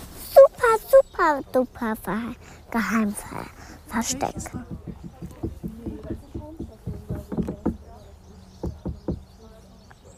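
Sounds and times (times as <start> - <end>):
faint voices murmuring: 0.0 - 10.1
speech: 1.2 - 5.0
knocking on a stone: 4.0 - 8.0, 8.6 - 9.3.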